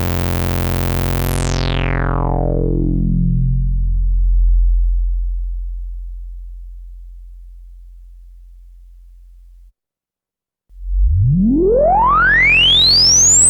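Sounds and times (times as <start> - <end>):
synthesizer filter sweep with increasing resonance: 0.2 - 6.2, 10.7 - 13.4.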